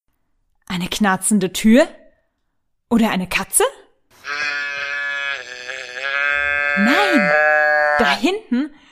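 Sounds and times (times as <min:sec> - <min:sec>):
speech: 0:00.7 - 0:02.0, 0:02.9 - 0:04.4, 0:06.8 - 0:08.8
toy teddy bear growling sadly: 0:04.2 - 0:08.1.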